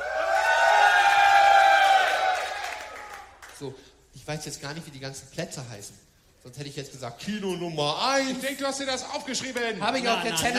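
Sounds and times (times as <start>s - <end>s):
festival crowd cheering and shouting: 0.0s - 3.1s
speech: 3.6s - 10.5s.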